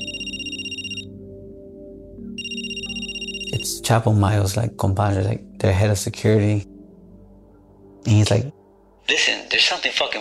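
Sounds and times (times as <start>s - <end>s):
phone ringtone ringing: 0.0s - 1.1s, 2.4s - 3.8s
speech: 3.7s - 6.7s, 8.0s - 10.2s.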